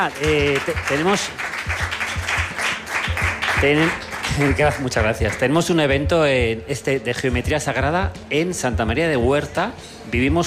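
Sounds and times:
speech: 0:00.0 - 0:02.0, 0:03.6 - 0:10.4
applause: 0:00.0 - 0:05.5.

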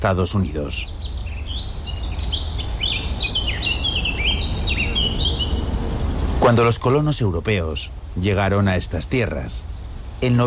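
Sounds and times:
speech: 0:00.0 - 0:01.1, 0:06.5 - 0:10.4
birds chirping and whistling in a New England forest: 0:00.6 - 0:06.5.

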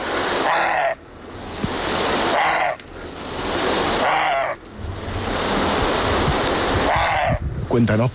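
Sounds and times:
steady rushing noise: 0:00.0 - 0:08.1
roe deer barking: 0:00.4 - 0:01.0, 0:02.3 - 0:02.8, 0:04.0 - 0:04.6, 0:06.8 - 0:07.4.

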